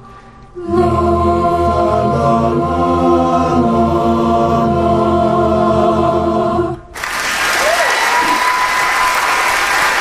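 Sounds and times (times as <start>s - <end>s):
live choir singing: 0.6s - 7.0s
taped audience applause: 7.0s - 9.9s.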